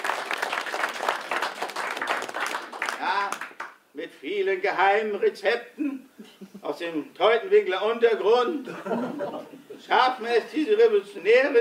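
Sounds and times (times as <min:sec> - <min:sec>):
audience applause: 0:00.0 - 0:03.7
speech: 0:04.2 - 0:11.5
laughter: 0:05.8 - 0:06.6, 0:08.6 - 0:09.9.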